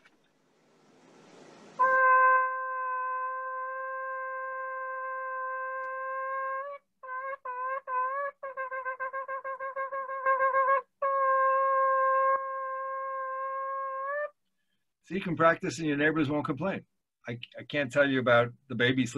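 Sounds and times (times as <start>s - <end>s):
shofar muffled by a sock in its bell: 1.8s - 14.3s
speech: 15.1s - 19.1s.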